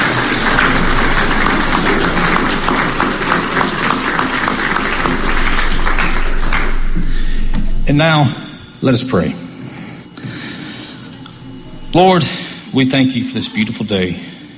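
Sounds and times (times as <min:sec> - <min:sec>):
audience applauding youth volunteer workers: 0:00.0 - 0:08.8
speech: 0:07.9 - 0:09.4, 0:11.9 - 0:14.3.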